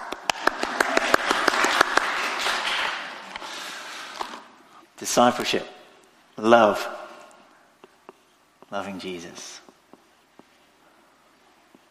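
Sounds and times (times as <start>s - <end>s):
round of applause: 0.0s - 3.3s
speech: 5.0s - 5.8s, 6.4s - 7.0s, 8.7s - 9.6s.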